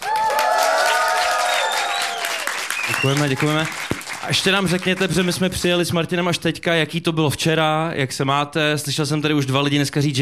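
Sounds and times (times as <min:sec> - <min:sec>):
crowd cheering and applauding: 0:00.0 - 0:05.5
whistling: 0:01.5 - 0:03.6
speech: 0:03.0 - 0:10.2.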